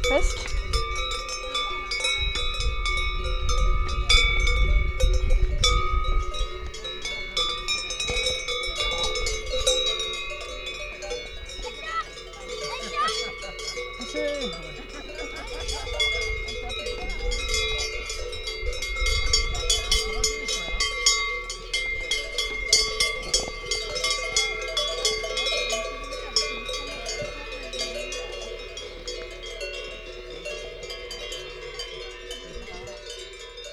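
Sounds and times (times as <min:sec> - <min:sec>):
livestock bells clanking on grazing herd: 0:00.0 - 0:33.7
laughter: 0:11.7 - 0:17.8, 0:25.6 - 0:28.7.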